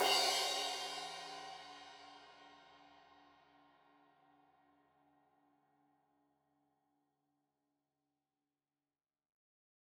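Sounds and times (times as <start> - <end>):
15 inch crash cymbal edge hit: 0.0 - 1.6.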